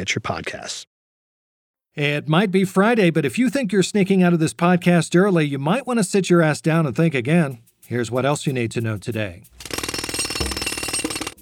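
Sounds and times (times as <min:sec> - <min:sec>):
speech: 0:00.0 - 0:00.9, 0:02.0 - 0:09.8
jackhammer pounding: 0:09.6 - 0:11.3.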